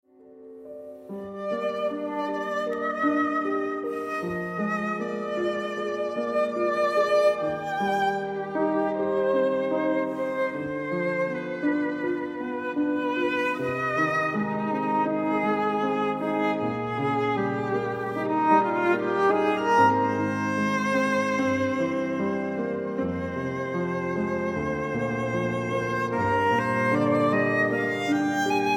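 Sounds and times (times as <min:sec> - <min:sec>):
piano: 0:00.0 - 0:28.7
violin: 0:00.2 - 0:28.7.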